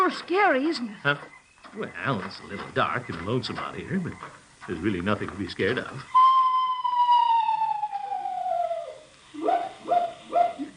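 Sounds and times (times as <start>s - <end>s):
speech: 0.1s - 6.2s
screech owl call: 6.1s - 10.7s.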